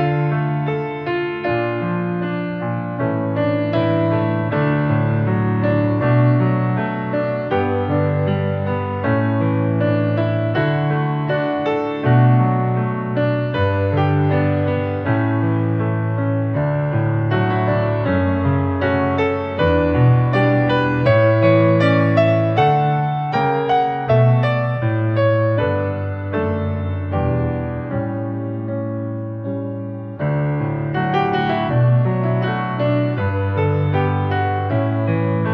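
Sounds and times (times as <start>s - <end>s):
solo piano: 0.0s - 35.5s.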